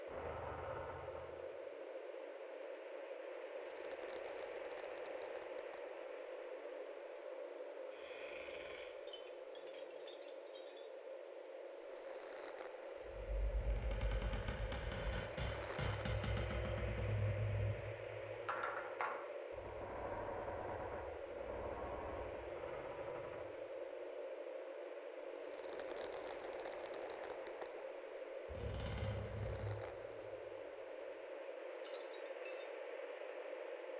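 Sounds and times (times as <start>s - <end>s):
atmospheric ambience: 0.1s - 33.9s.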